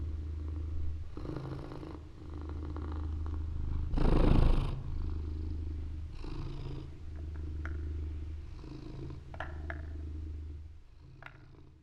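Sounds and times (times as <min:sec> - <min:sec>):
domestic cat purring: 0:00.0 - 0:11.8.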